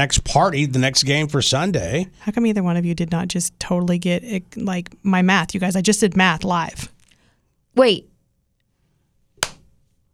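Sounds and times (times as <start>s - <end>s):
speech: 0.0s - 7.0s, 7.8s - 8.1s
single hand clap of a slow clap: 9.4s - 9.7s.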